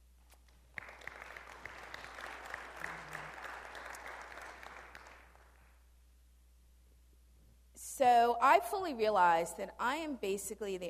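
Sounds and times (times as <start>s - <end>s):
crowd applause: 0.8s - 5.7s
speech: 8.0s - 10.8s.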